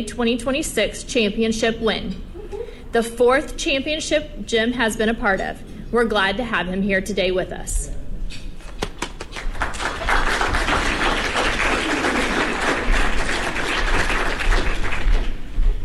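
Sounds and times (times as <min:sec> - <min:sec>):
speech: 0:00.0 - 0:02.3, 0:02.9 - 0:08.4
audience applause: 0:09.2 - 0:15.4.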